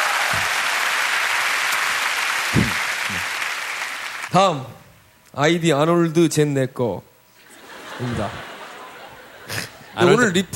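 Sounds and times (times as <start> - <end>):
audience applause for couple: 0.0 - 4.3
speech: 4.3 - 7.1, 8.0 - 8.5, 9.5 - 10.5
laughter: 7.4 - 10.4.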